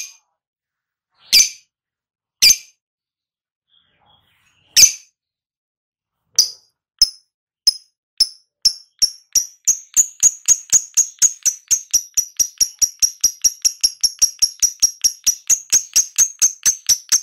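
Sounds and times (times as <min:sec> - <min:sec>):
lovebird chirping: 0:06.4 - 0:17.2.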